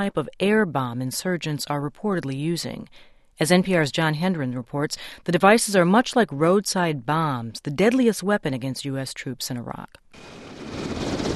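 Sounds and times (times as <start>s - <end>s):
speech: 0.0s - 11.0s
Black Hawk helicopter flying in Iraq: 10.2s - 11.3s.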